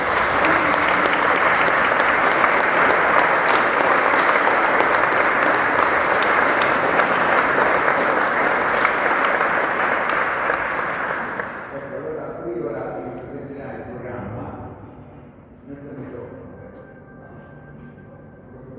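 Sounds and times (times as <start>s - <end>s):
audience applause: 0.0s - 11.8s.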